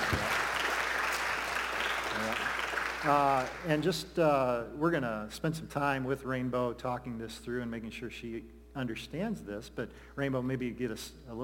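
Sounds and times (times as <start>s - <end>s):
audience clapping: 0.0s - 3.8s
speech: 3.0s - 11.4s.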